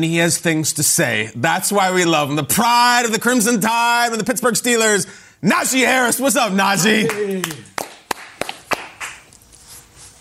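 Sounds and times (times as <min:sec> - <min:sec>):
speech: 0:00.0 - 0:07.7
hands clapping: 0:06.8 - 0:09.4.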